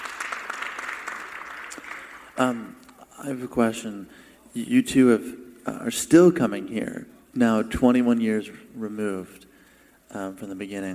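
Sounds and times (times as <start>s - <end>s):
audience applause: 0.0s - 2.5s
speech: 2.4s - 9.5s, 10.1s - 10.9s.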